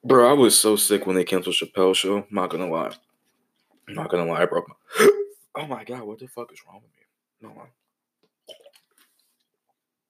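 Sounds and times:
speech: 0.1 - 3.1, 3.9 - 7.8
person drinking water during a break: 8.4 - 9.4.

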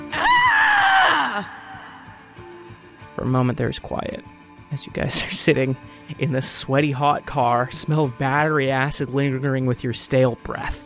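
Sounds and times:
woman howling: 0.0 - 2.3
speech: 3.2 - 10.8.

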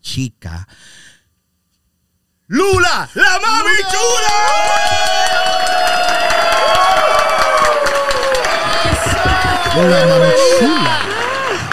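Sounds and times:
speech: 0.2 - 1.1, 2.5 - 7.1, 9.8 - 11.1
audience applause: 3.6 - 11.7.

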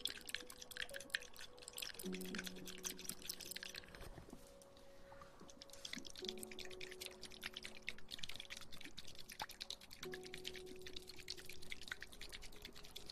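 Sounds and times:
water trickle of drips and small splashes: 0.0 - 13.1.

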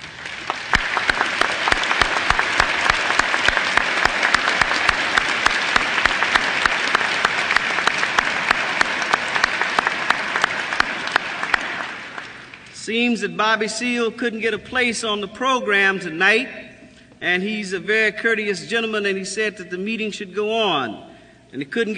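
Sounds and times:
audience applause: 0.0 - 12.7
speech: 12.9 - 16.6, 17.2 - 21.9.

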